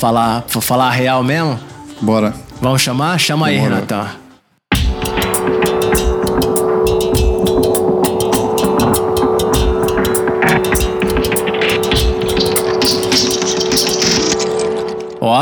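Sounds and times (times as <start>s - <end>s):
speech: 0.0s - 4.2s
podcast transition jingle: 4.7s - 15.3s.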